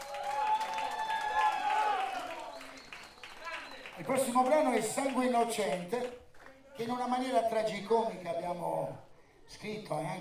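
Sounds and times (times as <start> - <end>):
audience applause: 0.0 - 6.6
speech: 4.0 - 6.2, 6.8 - 10.2.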